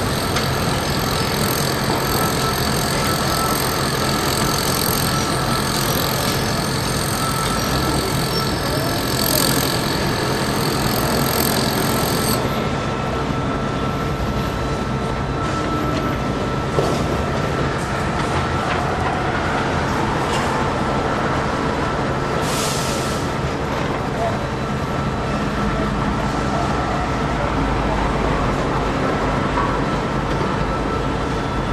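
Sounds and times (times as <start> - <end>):
construction site noise: 0.0 - 31.7.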